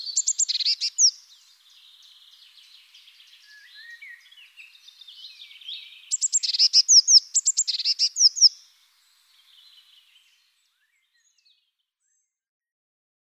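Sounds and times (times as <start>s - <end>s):
Eurasian blue tit giving high thin chirps and trilled notes: 0.0s - 8.7s.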